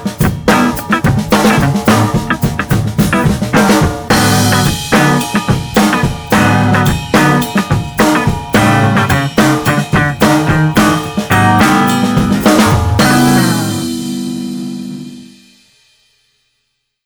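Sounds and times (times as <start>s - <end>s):
guitar: 0.0s - 15.6s
street drums: 0.0s - 16.3s.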